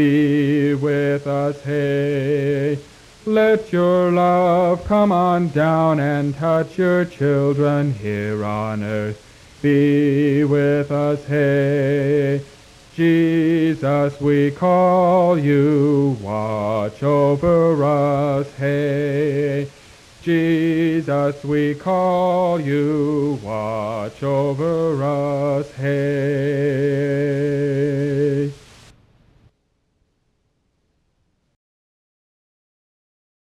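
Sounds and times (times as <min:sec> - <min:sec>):
people singing an English hymn: 0:00.0 - 0:28.6.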